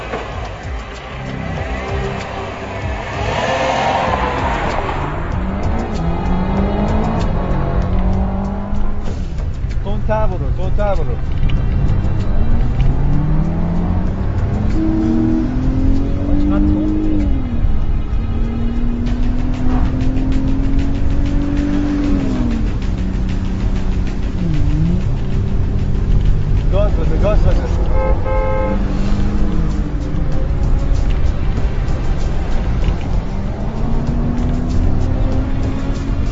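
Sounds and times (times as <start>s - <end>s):
car engine starting and accelerating in pursuit: 0.0s - 36.2s
people speaking: 9.8s - 11.3s, 16.1s - 17.6s, 26.6s - 28.0s.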